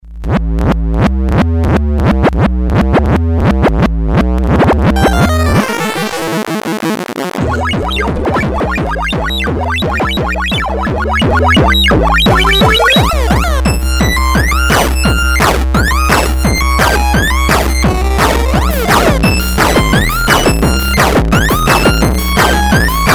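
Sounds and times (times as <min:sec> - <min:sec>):
8 bit beat: 0:00.2 - 0:23.1.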